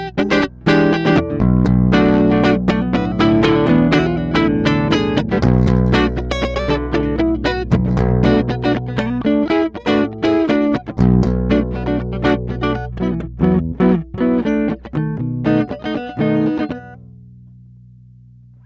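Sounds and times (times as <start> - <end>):
clean guitar: 0.0 - 18.6.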